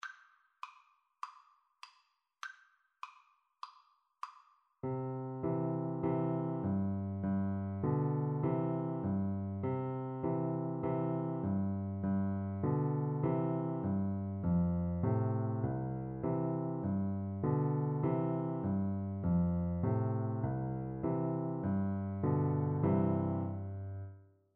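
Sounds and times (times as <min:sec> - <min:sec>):
piano duet: 0:04.8 - 0:24.2.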